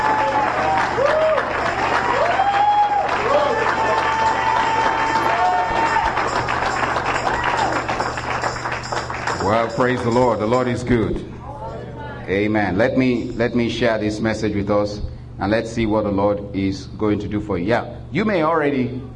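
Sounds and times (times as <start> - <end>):
audience clapping: 0.0 - 10.6
speech: 9.7 - 11.4, 12.3 - 19.1.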